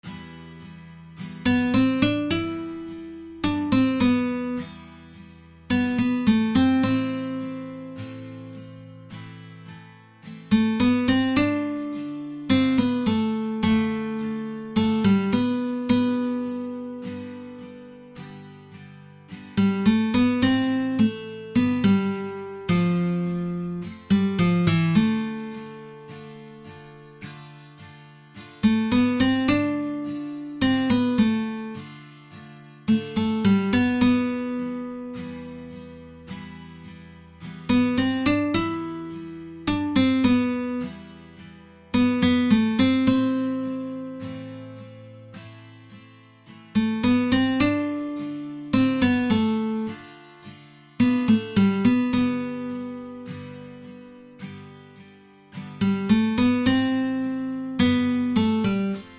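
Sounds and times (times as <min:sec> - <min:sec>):
guitar: 0:00.0 - 0:59.1.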